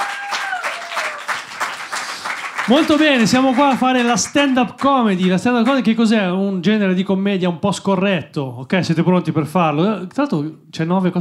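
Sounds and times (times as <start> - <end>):
pub audience applause at a stand-up comedy show: 0.0 - 5.9
speech: 2.7 - 11.1.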